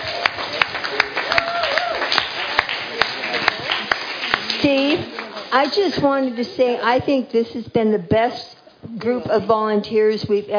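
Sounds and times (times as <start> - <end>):
audience applause: 0.0 - 5.5
speech: 5.5 - 10.5.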